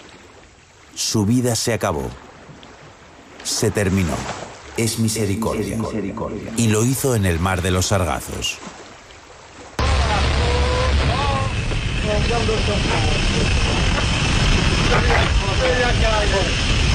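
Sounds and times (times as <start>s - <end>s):
speech: 1.0s - 2.2s, 3.6s - 8.8s, 12.1s - 14.0s, 14.9s - 16.7s
low mechanical rumble: 9.8s - 15.4s
loud steady hiss of an old archival bathysphere dive recording: 9.8s - 16.9s.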